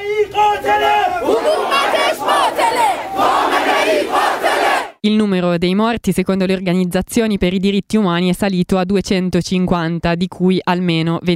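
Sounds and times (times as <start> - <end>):
crowd chanting anti-government slogans against the Tehran government: 0.6 - 5.0
speech: 5.0 - 11.3.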